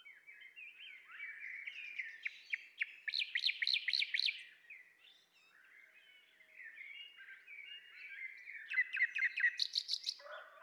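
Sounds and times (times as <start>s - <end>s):
common nightingale Luscinia megarhynchos singing rattling trills and whistles: 1.2s - 4.5s, 7.7s - 10.2s.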